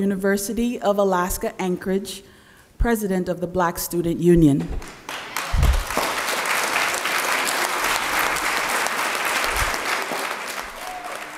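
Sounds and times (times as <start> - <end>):
speech: 0.0 - 5.2
audience applause: 4.9 - 11.3
low thumps: 5.5 - 5.9.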